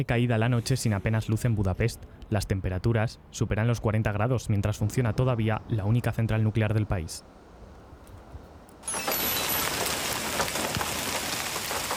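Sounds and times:
speech: 0.0s - 7.4s
heavy storm rain: 8.8s - 11.9s.

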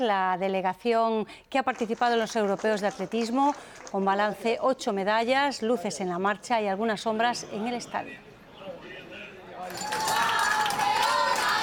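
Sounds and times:
speech: 0.0s - 8.3s
crowd cheering and clapping to welcome Spain's world champion rhythmic gymnastics team: 1.7s - 4.4s, 9.6s - 11.6s.

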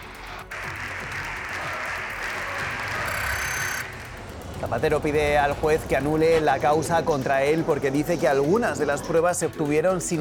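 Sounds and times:
crowd applause in parliament chamber: 0.0s - 6.4s
speech: 4.6s - 10.2s.

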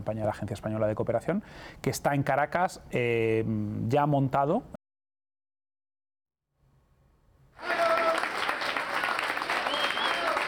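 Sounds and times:
speech: 0.0s - 4.8s
applause from family and friends welcoming returning emergency team: 7.6s - 10.4s.

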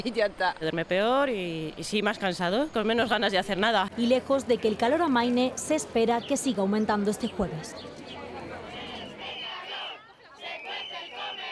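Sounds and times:
speech: 0.0s - 8.2s
parents and children chanting and shouting in protest in Zaragoza: 7.9s - 11.4s.

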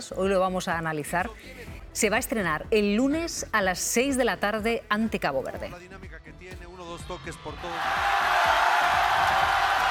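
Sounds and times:
speech: 0.0s - 8.3s
stadium crowd ovation and cheering: 7.2s - 9.9s.

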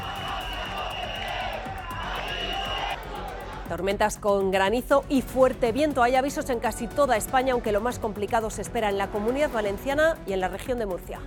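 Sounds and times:
residents protesting outdoors outside a council meeting: 0.0s - 3.7s
speech: 3.7s - 11.2s.

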